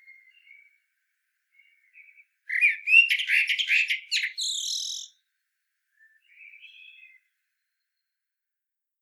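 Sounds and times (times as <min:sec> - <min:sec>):
common blackbird rich warbled phrase: 0:02.6 - 0:05.1.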